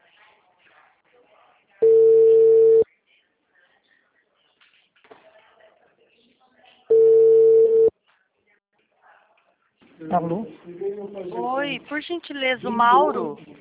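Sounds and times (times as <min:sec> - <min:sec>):
Brazilian telephone ringback tone while a call connects: 0:01.8 - 0:02.8, 0:06.9 - 0:07.9
speech: 0:10.0 - 0:13.5.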